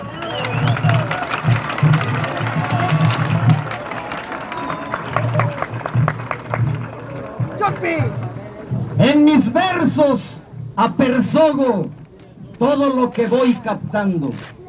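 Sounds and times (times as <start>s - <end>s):
audience applause for the organizers: 0.0s - 8.9s
speech: 7.8s - 8.2s, 9.1s - 12.0s, 12.6s - 14.6s.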